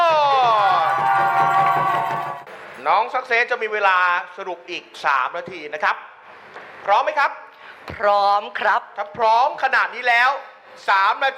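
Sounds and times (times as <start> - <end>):
audience applause welcoming a debater: 0.4 - 2.5
speech: 2.9 - 6.2, 6.8 - 11.3.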